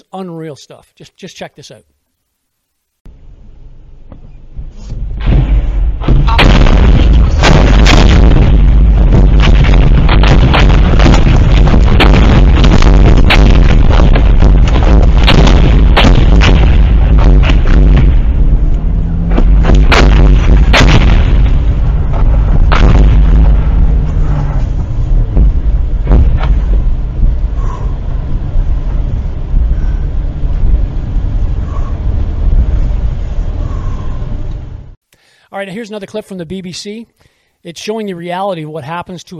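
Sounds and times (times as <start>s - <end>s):
speech: 0.1s - 2.0s, 35.7s - 39.3s
constant heavy rumble: 3.1s - 35.0s
mortar fire crashing down along a highway during the Russian invasion of Ukraine: 4.7s - 34.4s.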